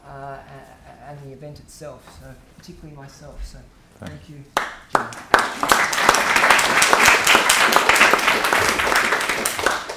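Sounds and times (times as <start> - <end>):
speech: 1.3 - 5.9
audience applause: 4.9 - 9.9.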